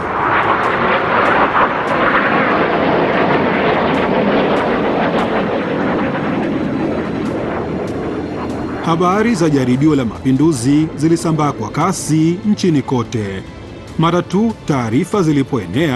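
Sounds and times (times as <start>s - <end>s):
F-16 fighter jets flying low over Ankara: 0.0s - 12.1s
speech: 8.9s - 15.9s.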